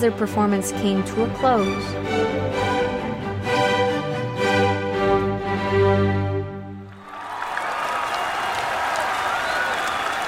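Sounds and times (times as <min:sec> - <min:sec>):
speech: 0:00.0 - 0:03.0
sustained harmonic music from a rock band and orchestra: 0:00.0 - 0:06.9
large crowd cheering and chanting in a park: 0:06.9 - 0:10.2.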